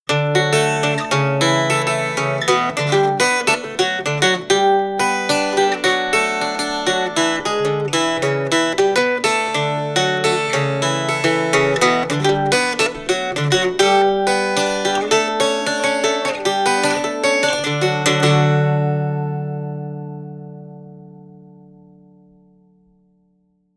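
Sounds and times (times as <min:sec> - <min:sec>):
Puerto Rican cuatro playing: 0:00.1 - 0:23.2.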